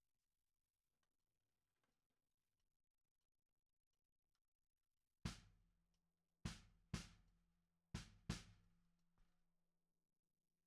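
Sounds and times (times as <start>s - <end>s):
snare drum: 6.5s - 7.2s, 8.0s - 8.5s.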